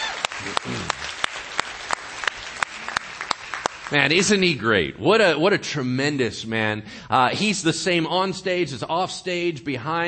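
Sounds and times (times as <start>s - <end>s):
audience applause: 0.0s - 4.0s
speech: 3.9s - 10.0s.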